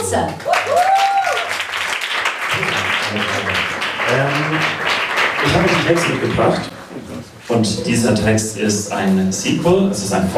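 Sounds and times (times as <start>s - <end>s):
speech: 0.0s - 1.1s, 4.1s - 6.7s, 7.5s - 10.3s
audience applause: 0.4s - 6.8s.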